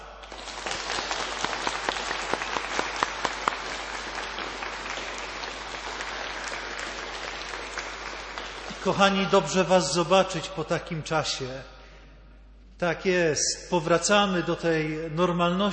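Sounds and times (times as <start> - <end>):
crowd applause: 0.0 - 9.5
speech: 8.8 - 11.8, 12.8 - 15.7.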